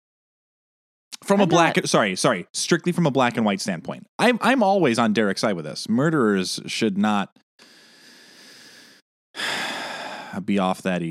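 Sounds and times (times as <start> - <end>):
speech: 1.2 - 7.8, 10.3 - 11.0
deep breath: 7.6 - 10.5.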